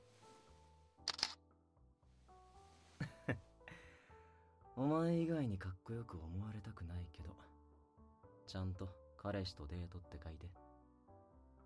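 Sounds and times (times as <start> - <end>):
camera shutter clicks: 1.1 - 1.4
speech: 4.8 - 7.5, 8.5 - 10.7.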